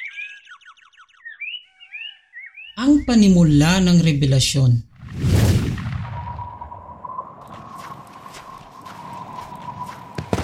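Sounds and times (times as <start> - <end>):
speech: 2.8 - 4.9
quick hurried footsteps of a man arriving: 7.4 - 10.4.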